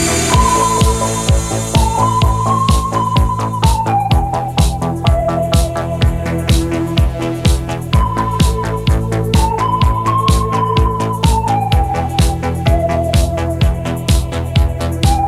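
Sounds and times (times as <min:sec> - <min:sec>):
chords: 0:00.0 - 0:15.2.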